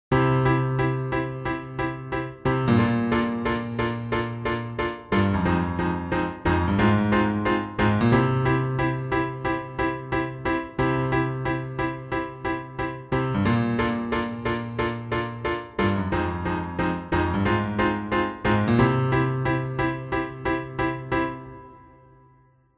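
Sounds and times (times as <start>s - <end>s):
piano: 0.0s - 22.7s.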